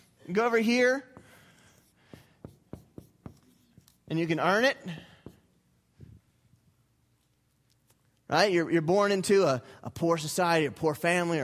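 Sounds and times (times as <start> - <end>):
speech: 0.3 - 1.1, 4.1 - 5.1, 8.3 - 11.4
writing on a board: 1.2 - 5.6.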